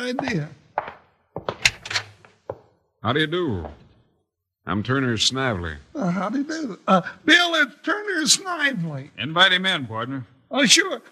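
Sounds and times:
speech: 0.1s - 0.6s, 3.0s - 3.8s, 4.7s - 11.1s
door opening: 0.8s - 2.6s
door latch clicking: 1.5s - 2.4s.

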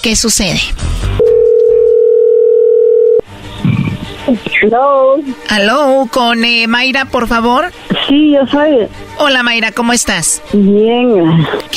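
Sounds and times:
speech: 0.0s - 1.3s, 4.3s - 11.7s
telephone ringback tone while dialing: 1.2s - 3.2s.

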